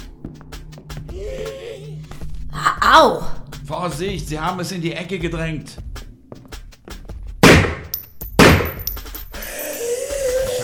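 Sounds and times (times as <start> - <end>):
speech: 1.2 - 5.9
gunshots: 7.4 - 8.8.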